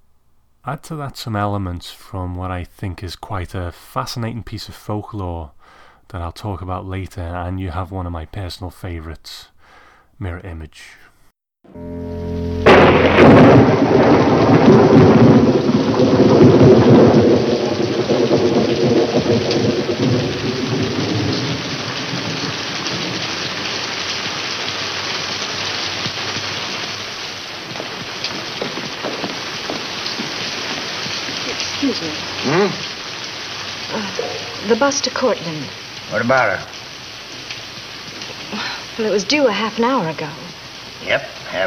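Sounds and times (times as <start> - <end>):
speech: 0.6 - 9.5, 10.2 - 12.0, 34.8 - 36.8, 39.0 - 40.4, 41.0 - 41.6
heavy rain: 11.8 - 41.6.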